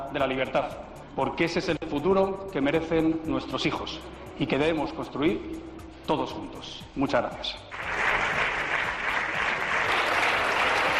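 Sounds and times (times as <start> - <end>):
speech: 0.1 - 8.0
parliament applause: 7.7 - 10.9.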